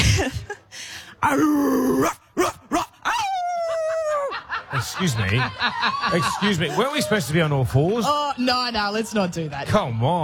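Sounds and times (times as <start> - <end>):
speech: 1.2 - 2.6, 4.8 - 10.2
person imitating dog barks and yelps: 1.2 - 4.1
laughter: 2.7 - 7.2.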